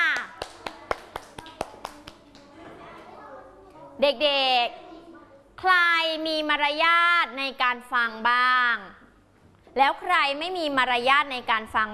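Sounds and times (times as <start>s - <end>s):
children clapping for a group: 0.0s - 2.6s
speech: 4.0s - 4.9s, 5.6s - 9.0s, 9.8s - 11.9s.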